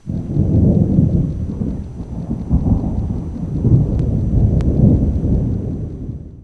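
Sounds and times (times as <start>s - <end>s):
thunder: 0.0s - 6.4s.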